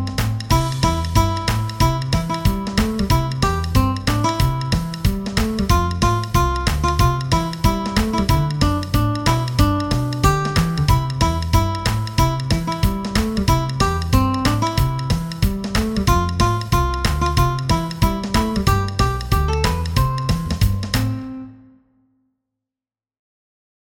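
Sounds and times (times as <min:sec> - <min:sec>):
guitar picking in C major: 0:00.0 - 0:21.8.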